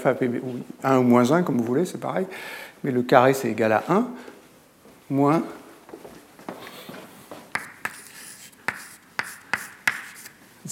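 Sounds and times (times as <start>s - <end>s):
speech: 0.0s - 4.3s, 5.1s - 5.6s
faint hiss: 0.0s - 10.7s
chalk or marker writing an equation on a board: 7.5s - 10.4s.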